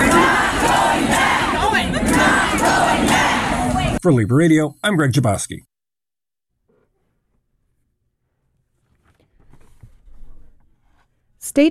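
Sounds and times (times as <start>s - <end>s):
large crowd chanting inside capitol building hall: 0.0s - 4.0s
speech: 4.0s - 5.7s, 11.4s - 11.6s.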